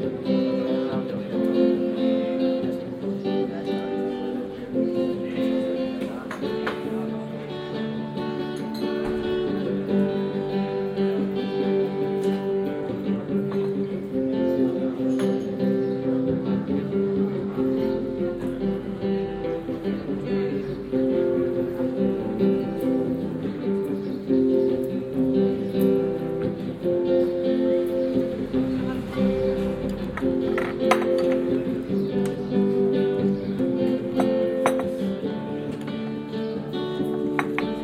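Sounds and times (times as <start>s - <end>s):
faint talk in a town plaza: 0.0s - 37.8s
local busker playing a sustained melody in Mondoñedo Square: 0.0s - 37.8s
cups clinking: 34.2s - 35.1s.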